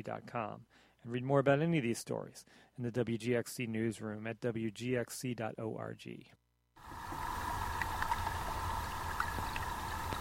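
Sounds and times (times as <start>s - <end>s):
speech: 0.0s - 7.2s
low underwater hum from the bottom of a pond: 6.8s - 10.1s.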